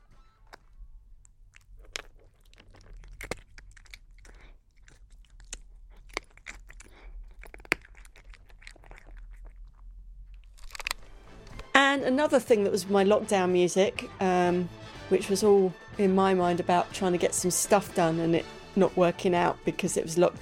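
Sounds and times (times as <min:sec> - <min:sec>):
cat eating biscuits: 0:00.0 - 0:11.7
speech: 0:12.0 - 0:20.4.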